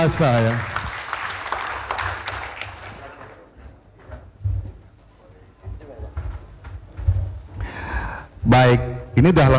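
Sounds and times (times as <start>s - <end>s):
speech: 0.0s - 0.8s, 8.5s - 9.5s
audience applause: 0.0s - 3.6s.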